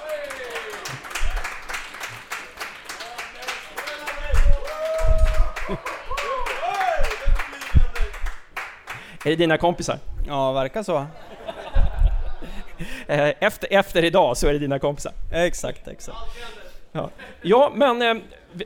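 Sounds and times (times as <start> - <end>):
voices cheering: 0.0 - 1.8, 3.0 - 8.2
audience applause: 0.0 - 9.1
laughter: 5.4 - 6.4, 11.2 - 12.9
speech: 9.2 - 11.2, 12.8 - 18.6.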